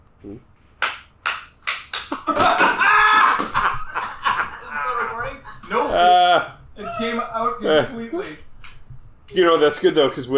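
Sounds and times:
speech: 0.2 - 0.6, 7.0 - 8.4, 9.3 - 10.3
hand claps: 0.8 - 3.7
laughter: 2.2 - 8.0.

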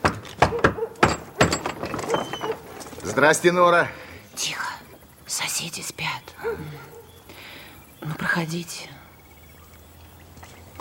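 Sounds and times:
knocking on an apartment door: 0.0 - 2.3
speech: 3.1 - 4.5, 8.2 - 9.0.

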